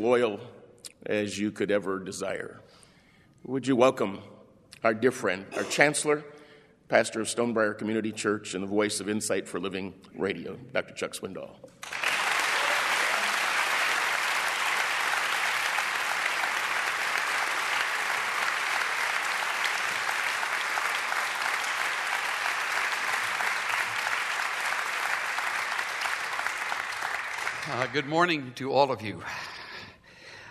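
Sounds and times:
speech: 0:00.0 - 0:02.8, 0:03.4 - 0:12.0, 0:27.9 - 0:29.6
audience applauding: 0:11.8 - 0:28.6.

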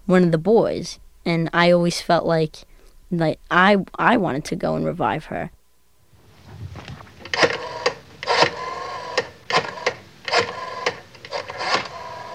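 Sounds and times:
speech: 0:00.1 - 0:05.6
rotary phone being dialed: 0:07.2 - 0:12.3.

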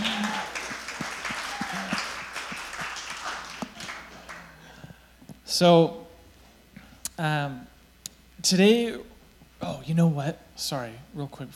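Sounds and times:
audience clapping: 0:00.0 - 0:04.9
speech: 0:05.6 - 0:06.0, 0:07.2 - 0:07.7, 0:08.4 - 0:11.5.

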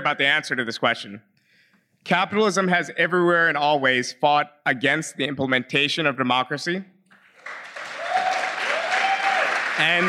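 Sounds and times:
speech: 0:00.0 - 0:01.3, 0:02.0 - 0:06.9, 0:09.8 - 0:10.0
audience applause at a talk on capitalism and democracy: 0:07.2 - 0:10.0.

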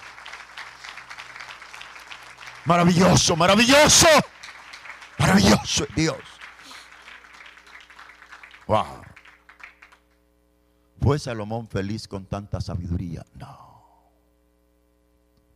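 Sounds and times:
crowd applauding: 0:00.0 - 0:10.2
speech: 0:02.6 - 0:04.3, 0:05.3 - 0:06.3, 0:08.7 - 0:09.1, 0:11.0 - 0:13.6
person speaking excitedly: 0:02.7 - 0:04.3, 0:05.2 - 0:06.2.

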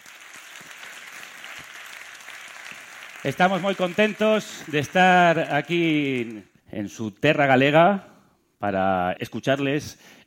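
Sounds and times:
audience applause: 0:00.0 - 0:06.5
speech: 0:03.2 - 0:10.2.

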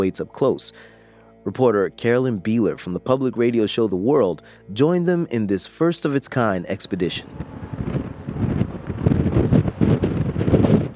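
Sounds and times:
speech: 0:00.0 - 0:07.7
wind at a port near the southern tip of Chile: 0:06.7 - 0:10.9.

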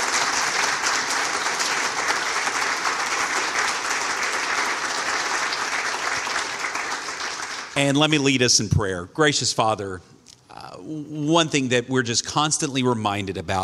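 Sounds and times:
crowd applause: 0:00.0 - 0:07.8
speech: 0:07.8 - 0:10.1, 0:10.9 - 0:13.6.

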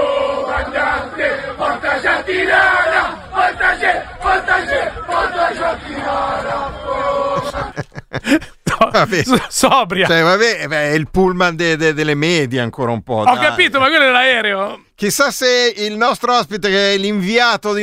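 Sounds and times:
football fans chanting aboard an airplane: 0:00.0 - 0:07.8
laughter: 0:02.5 - 0:10.3
speech: 0:08.2 - 0:17.8.

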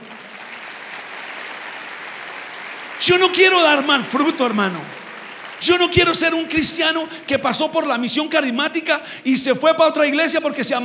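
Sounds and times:
audience applauding: 0:00.0 - 0:08.0
speech: 0:03.0 - 0:05.0, 0:05.6 - 0:10.8.

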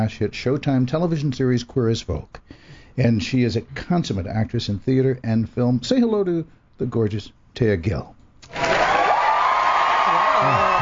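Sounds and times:
speech: 0:00.0 - 0:08.6
studio applause and cheering: 0:08.5 - 0:10.7.

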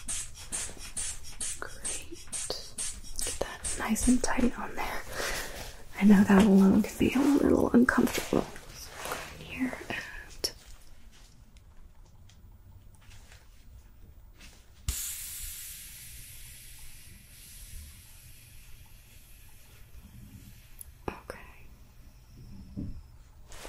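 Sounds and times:
blood pressure cuff inflating and deflating: 0:00.0 - 0:05.9, 0:14.8 - 0:23.6
speech: 0:03.8 - 0:05.0, 0:06.0 - 0:08.6.

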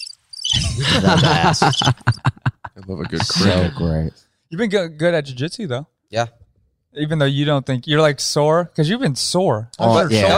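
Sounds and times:
cricket chirping sound effect: 0:00.0 - 0:00.6, 0:01.2 - 0:02.2
laughter: 0:00.5 - 0:04.0
speech: 0:00.8 - 0:10.3.

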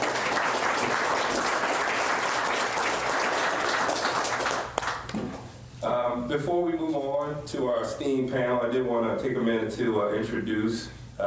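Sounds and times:
audience applause: 0:00.0 - 0:05.1
speech: 0:06.3 - 0:11.2.

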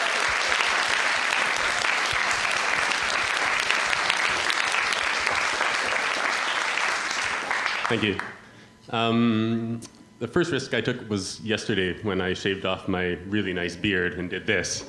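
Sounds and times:
audience applause: 0:00.0 - 0:08.4
speech: 0:07.9 - 0:08.3, 0:08.9 - 0:14.8.

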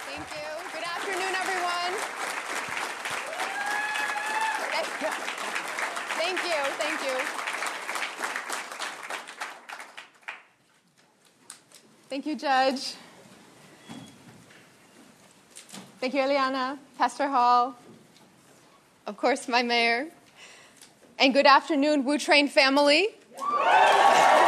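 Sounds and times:
crowd applauding in a standing ovation: 0:00.0 - 0:10.6, 0:23.4 - 0:24.4
speech: 0:06.6 - 0:07.4, 0:12.2 - 0:13.0, 0:16.0 - 0:17.8, 0:19.2 - 0:20.2, 0:21.2 - 0:23.8.

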